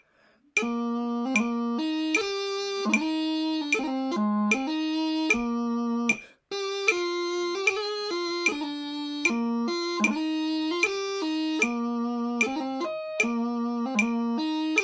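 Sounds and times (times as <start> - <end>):
pipes and drums playing in harmony: 0.6 - 14.8.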